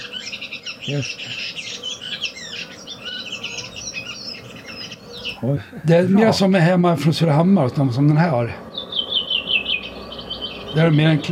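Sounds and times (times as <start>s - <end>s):
redwing brief lower call: 0.0s - 6.0s, 8.4s - 11.3s
redwing thrush song with chattering: 0.0s - 11.3s
speech: 0.8s - 1.6s, 5.4s - 8.6s, 10.8s - 11.3s.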